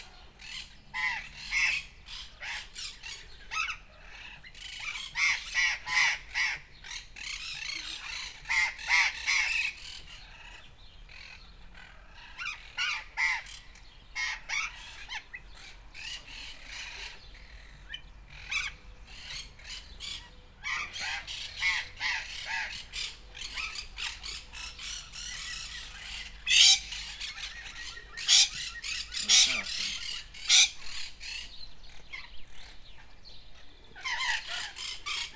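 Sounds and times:
burrowing parrots calling in Debrecen zoo: 0.4s - 35.3s.

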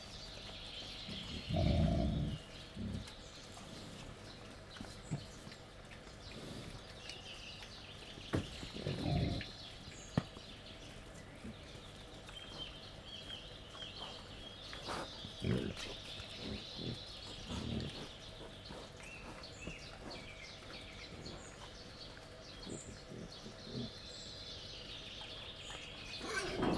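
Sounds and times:
captive wild boar grunting while feeding: 1.0s - 5.4s, 8.2s - 10.1s, 13.8s - 24.7s, 25.9s - 26.7s.

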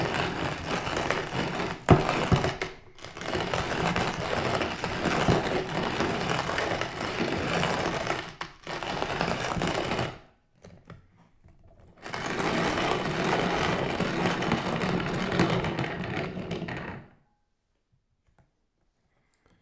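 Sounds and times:
manual coffee grinder grinding: 0.0s - 10.0s, 12.2s - 15.8s.

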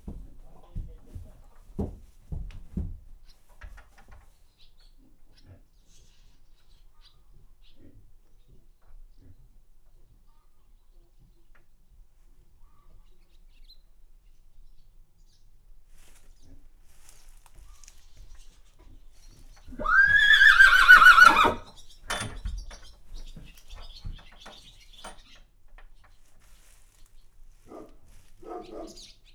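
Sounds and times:
horse neighing in a farmyard: 19.7s - 21.7s.

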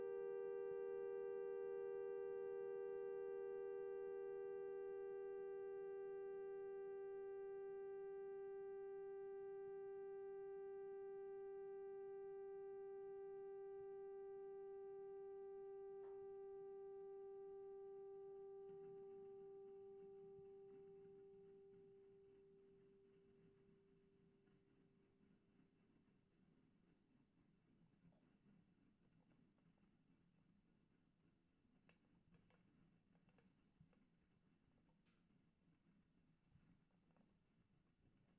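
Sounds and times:
humming spinning top: 0.0s - 23.2s.

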